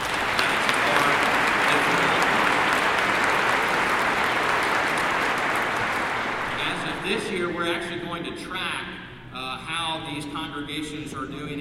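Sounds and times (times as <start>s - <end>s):
audience applauding: 0.0s - 7.1s
speech: 7.5s - 11.6s.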